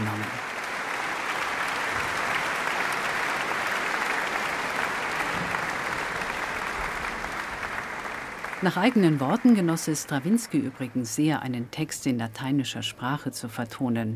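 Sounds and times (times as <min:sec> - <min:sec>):
concert hall audience applause: 0:00.0 - 0:11.3
speech: 0:08.6 - 0:14.1.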